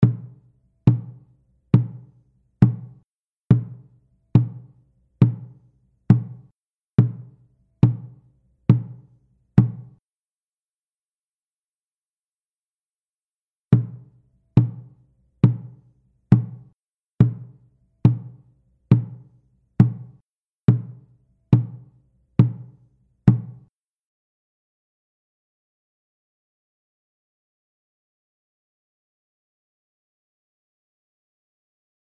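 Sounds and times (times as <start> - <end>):
caxambu drum: 0.0 - 1.2, 1.8 - 10.0, 13.8 - 14.9, 16.4 - 19.2, 19.8 - 21.0.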